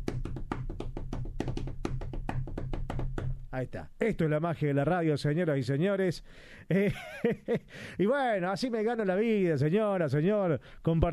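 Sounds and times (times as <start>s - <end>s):
hand tapping imitating a bombo drum solo: 0.0s - 3.5s
speech: 3.6s - 11.1s.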